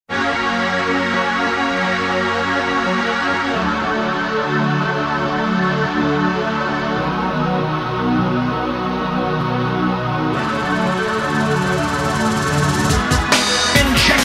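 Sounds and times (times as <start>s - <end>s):
synth: 0.1s - 14.2s.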